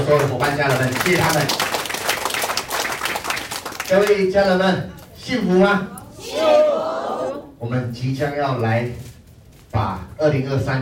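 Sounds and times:
audience applause: 0.0s - 4.2s
speech: 0.1s - 1.7s, 3.9s - 6.6s, 7.6s - 9.0s, 9.8s - 10.8s.

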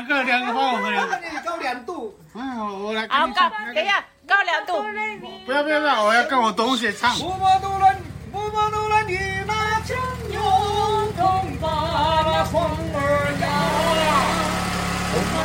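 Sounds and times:
laughter: 0.0s - 1.9s
speech: 0.1s - 14.4s
motorcycle engine rumbling: 7.0s - 15.4s
person singing or calling out: 7.2s - 15.4s.

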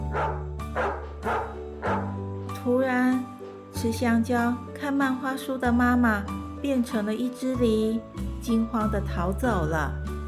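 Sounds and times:
dog barking: 0.1s - 2.2s
speech: 3.8s - 10.1s.

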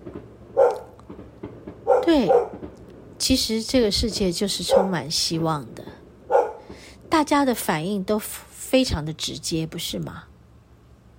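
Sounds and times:
dog barking: 0.6s - 1.0s, 1.8s - 2.6s, 4.6s - 5.0s, 6.3s - 6.7s
speech: 2.0s - 2.6s, 3.2s - 6.0s, 7.1s - 10.3s.

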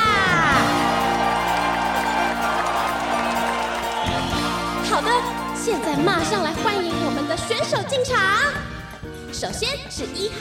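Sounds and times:
crowd cheering loudly with whoops and shouts: 0.2s - 7.4s
speech: 5.2s - 10.3s.

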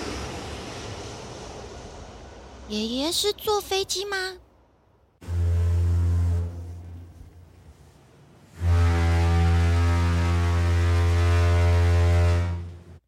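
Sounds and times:
speech: 2.7s - 4.4s
ship's horn with deep buzzy blasts: 5.2s - 13.0s.

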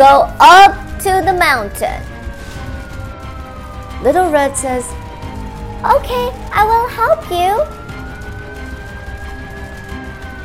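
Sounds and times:
speech: 0.0s - 2.1s, 4.0s - 5.0s, 5.8s - 7.8s
fire engine siren: 0.0s - 10.4s.

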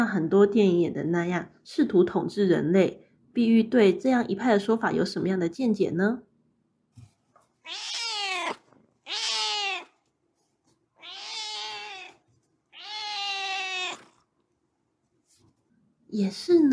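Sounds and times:
speech: 0.1s - 6.3s, 7.7s - 9.2s, 16.1s - 16.7s
cat meowing: 7.6s - 10.0s, 11.0s - 14.3s.

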